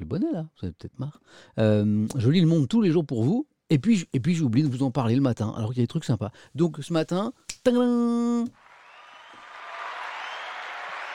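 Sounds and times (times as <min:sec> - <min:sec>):
speech: 0:00.1 - 0:08.6
applause: 0:08.5 - 0:11.1.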